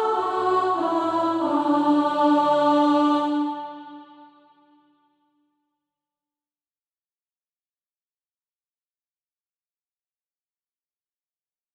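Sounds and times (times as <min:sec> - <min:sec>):
soprano singing practice music: 0:00.0 - 0:04.8.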